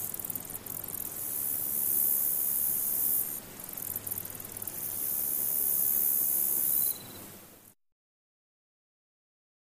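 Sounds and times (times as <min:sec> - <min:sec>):
cicadas buzzing: 0:00.0 - 0:07.4
crickets chirping: 0:00.0 - 0:07.4.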